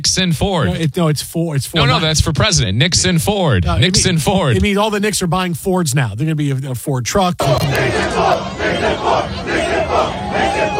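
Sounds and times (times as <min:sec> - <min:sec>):
speech: 0:00.0 - 0:10.7
large crowd chanting aggressively in unison: 0:07.4 - 0:10.7.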